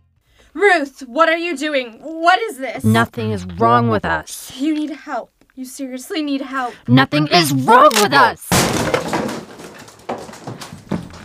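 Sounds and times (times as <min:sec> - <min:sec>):
speech: 0:00.6 - 0:09.3
chair being thrown and crashing: 0:08.5 - 0:11.2.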